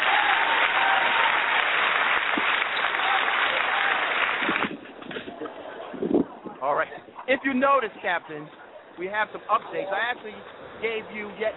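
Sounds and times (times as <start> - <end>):
audience applause: 0.0 - 4.8
speech: 6.7 - 11.5.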